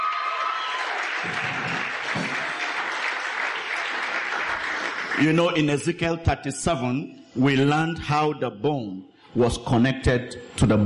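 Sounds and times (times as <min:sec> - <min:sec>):
audience clapping: 0:00.0 - 0:05.9
speech: 0:05.2 - 0:10.8.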